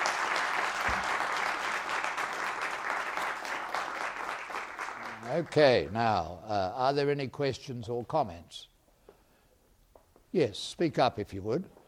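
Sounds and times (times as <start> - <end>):
round of applause: 0.0 - 5.9
speech: 5.3 - 8.7, 10.3 - 11.8.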